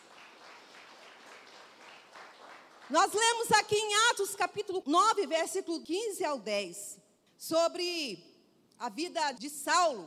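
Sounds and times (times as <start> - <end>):
audience applause: 0.0 - 2.9
speech: 2.9 - 10.0.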